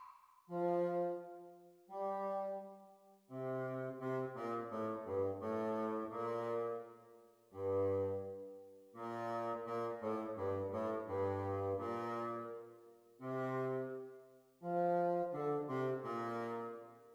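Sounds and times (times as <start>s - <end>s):
bassoon duet: 0.5s - 7.0s, 7.5s - 12.7s, 13.2s - 16.9s.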